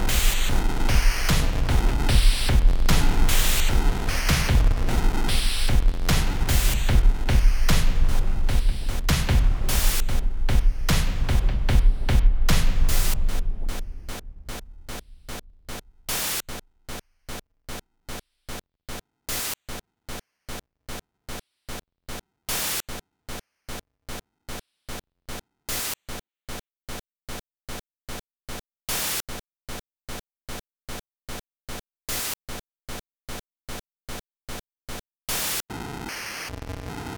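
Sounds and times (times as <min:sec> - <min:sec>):
noise effects: 0:00.0 - 0:15.8
percussion: 0:00.0 - 0:17.4.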